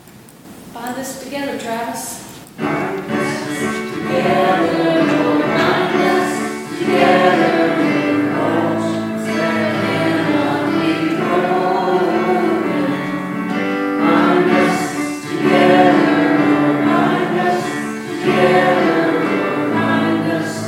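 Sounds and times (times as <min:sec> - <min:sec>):
closing chorus at a church service: 0:02.6 - 0:20.6.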